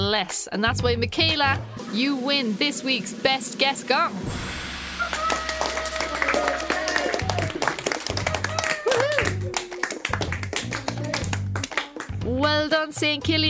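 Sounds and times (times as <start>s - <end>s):
speech: 0.2s - 4.6s, 12.4s - 13.4s
children cheering: 5.0s - 10.2s
children's applause: 5.0s - 12.2s.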